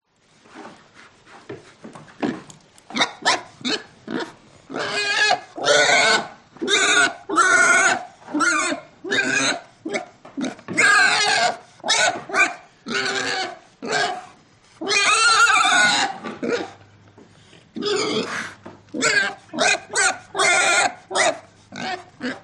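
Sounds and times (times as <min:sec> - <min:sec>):
pig squealing and grunting: 0:02.3 - 0:16.8, 0:17.7 - 0:22.4.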